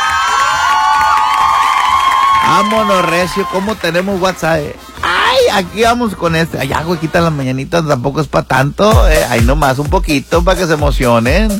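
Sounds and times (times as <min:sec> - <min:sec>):
crowd cheering with whoops for a birthday greeting: 0:00.0 - 0:05.4
speech: 0:02.5 - 0:11.5.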